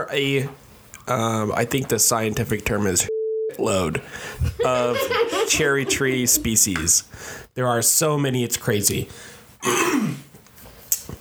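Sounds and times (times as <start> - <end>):
speech: 0.0 - 10.2
laughter: 3.9 - 7.1
hacking cough: 9.6 - 10.3
throat clearing: 9.6 - 10.3.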